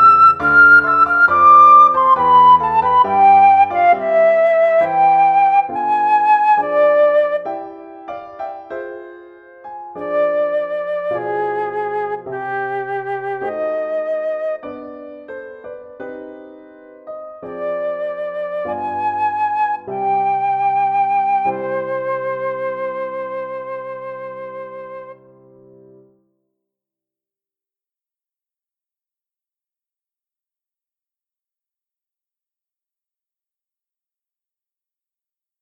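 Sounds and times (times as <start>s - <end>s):
flute: 0.0s - 26.0s
piano: 0.0s - 26.6s.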